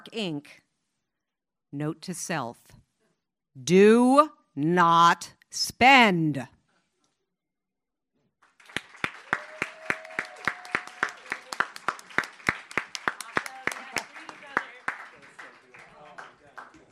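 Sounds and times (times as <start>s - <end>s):
speech: 0.1s - 0.6s, 1.7s - 2.8s, 3.6s - 6.6s
audience applause: 8.5s - 16.8s.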